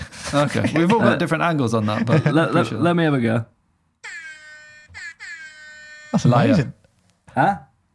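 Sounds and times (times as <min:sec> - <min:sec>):
speech: 0:00.3 - 0:03.5, 0:06.2 - 0:07.7
voice imitating an air horn: 0:04.1 - 0:06.7.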